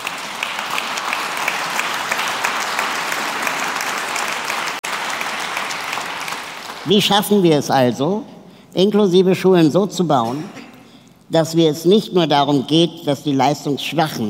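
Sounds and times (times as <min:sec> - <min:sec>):
audience applause: 0:00.0 - 0:07.0
speech: 0:06.8 - 0:10.6, 0:11.3 - 0:14.2.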